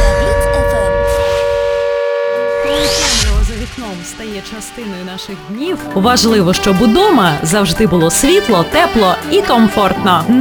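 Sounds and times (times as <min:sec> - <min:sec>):
air raid siren: 0:00.0 - 0:05.6
speech: 0:04.0 - 0:10.4.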